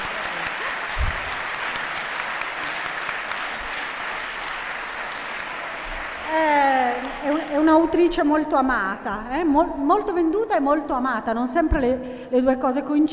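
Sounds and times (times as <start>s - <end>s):
audience applause: 0.0s - 8.0s
speech: 7.8s - 13.1s.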